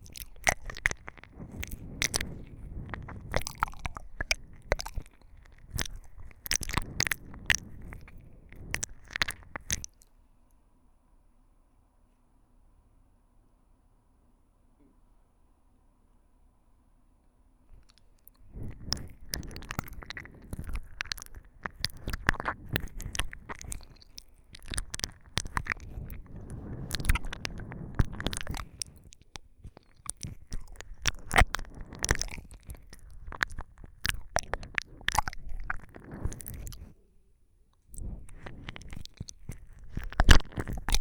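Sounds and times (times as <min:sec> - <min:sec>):
wet splashy ear licking ASMR: 0:00.0 - 0:10.1, 0:17.7 - 0:37.0, 0:37.8 - 0:40.9.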